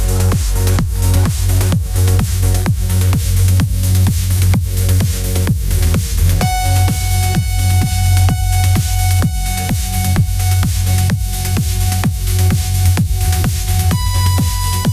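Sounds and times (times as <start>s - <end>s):
electronic dance music synthesizer lead: 0.0s - 14.9s.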